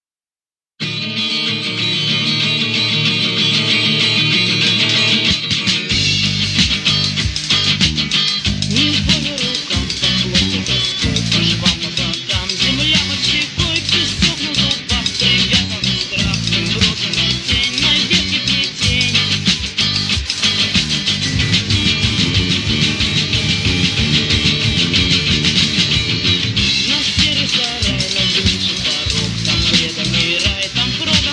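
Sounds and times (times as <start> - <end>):
reggae music: 0.8 - 31.3.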